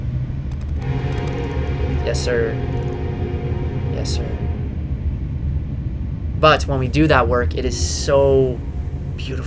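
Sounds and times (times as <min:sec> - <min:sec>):
passing train rumble: 0:00.2 - 0:09.4
train rattling: 0:00.4 - 0:03.1
faint rhythmic clicks: 0:00.4 - 0:04.7
speech: 0:02.1 - 0:02.9, 0:04.0 - 0:04.4, 0:06.4 - 0:09.4.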